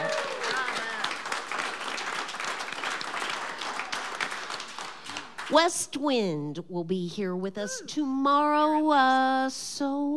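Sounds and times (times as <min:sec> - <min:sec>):
audience applause: 0:00.0 - 0:05.5
speech: 0:05.5 - 0:10.1.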